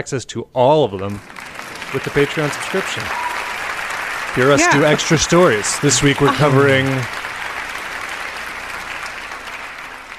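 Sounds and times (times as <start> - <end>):
speech: 0.0 - 3.2, 4.4 - 7.2
applause sound effect: 1.0 - 10.1
laughter: 1.8 - 3.1, 4.4 - 7.1.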